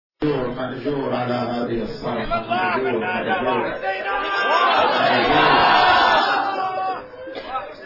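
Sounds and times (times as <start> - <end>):
speech: 0.2 - 5.8
crowd wailing and crying out in mourning: 2.5 - 7.8.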